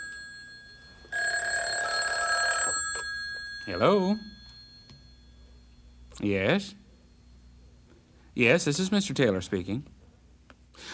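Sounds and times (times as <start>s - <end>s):
telephone bell ringing: 0.0s - 5.6s
speech: 3.7s - 4.3s, 6.2s - 6.8s, 8.4s - 10.0s.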